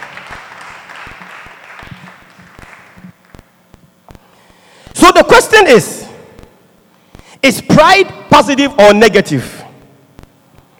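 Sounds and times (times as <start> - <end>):
audience applause: 0.0 - 3.4
speech: 5.0 - 6.0, 7.4 - 9.6.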